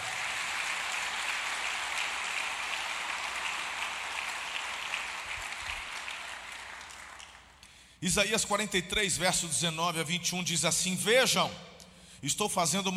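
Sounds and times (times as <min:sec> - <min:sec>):
church audience applauding: 0:00.0 - 0:07.6
speech: 0:08.0 - 0:12.9.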